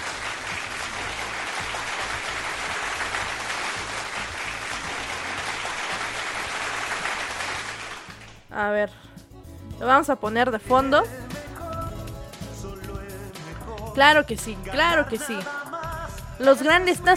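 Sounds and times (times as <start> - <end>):
crowd applause: 0.0 - 8.5
speech: 8.6 - 9.1, 9.8 - 11.2, 14.0 - 15.6, 16.4 - 17.1.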